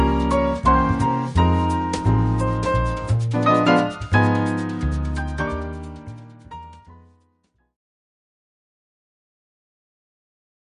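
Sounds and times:
piano trio playing: 0.0 - 7.3.

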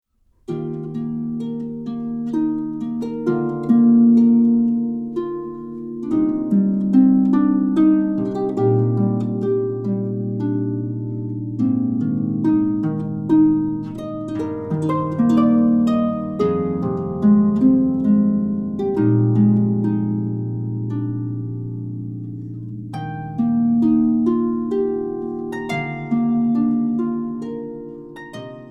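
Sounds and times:
wedding song on harp: 0.4 - 28.7.

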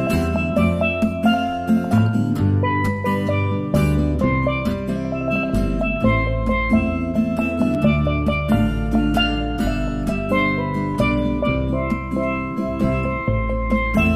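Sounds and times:
jazz duo on steel strings: 0.0 - 14.1.

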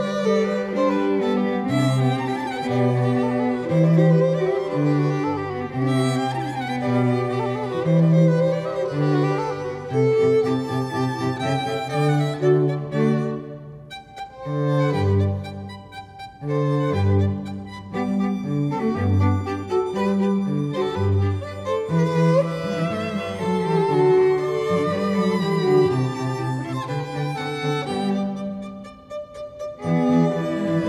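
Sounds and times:
string quartet playing an allegro: 0.0 - 30.8.

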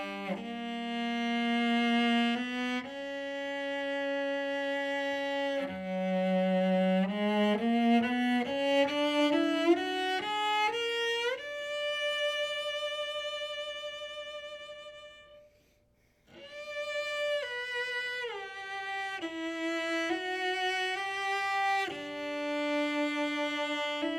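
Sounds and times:
cello: 0.0 - 24.1.

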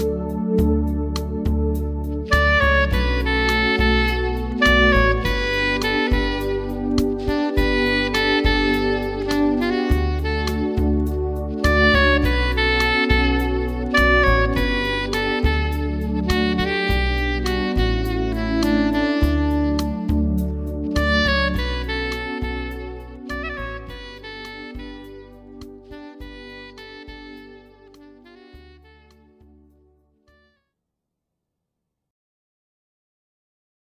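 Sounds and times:
jazz saxophone: 0.0 - 29.6.

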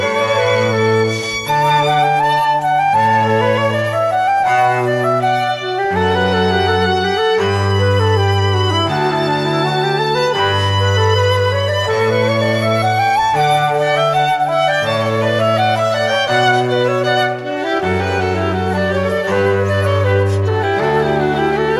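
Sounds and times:
classical trio playing a canon: 0.0 - 21.7.

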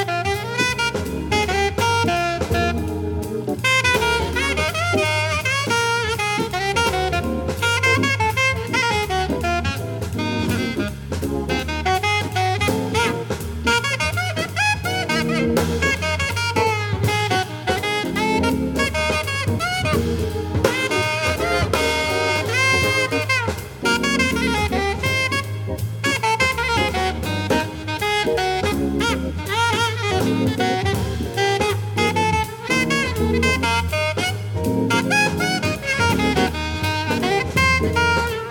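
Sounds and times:
swing music: 0.0 - 38.4.

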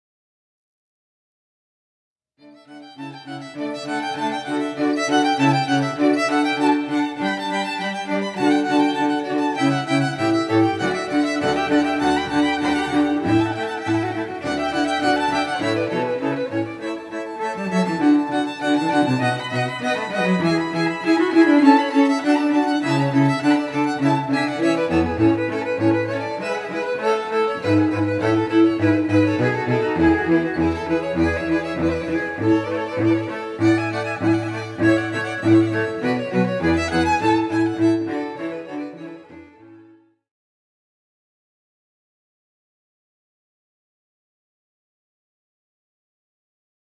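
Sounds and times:
string trio playing: 2.7 - 39.8.

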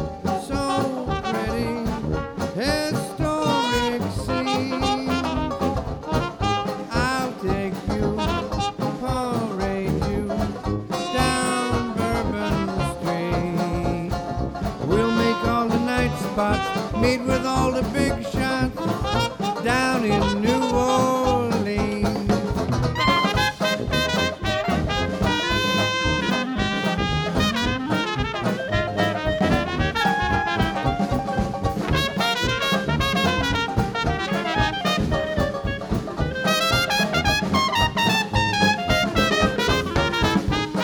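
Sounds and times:
live Dixieland jazz quintet playing: 0.0 - 40.8.

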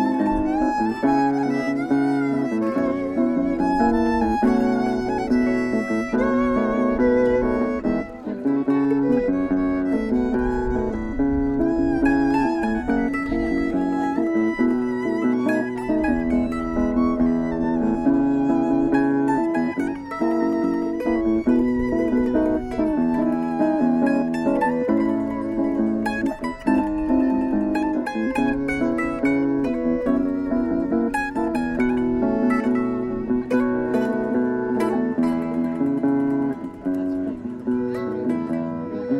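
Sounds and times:
guitar: 0.0 - 39.1
mandolin: 0.0 - 39.1
processional violin: 0.0 - 39.1.

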